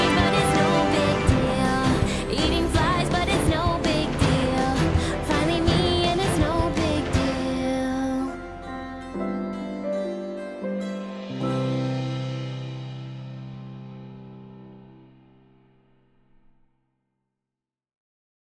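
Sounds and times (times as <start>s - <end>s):
epic orchestral cover: 0.0s - 14.3s.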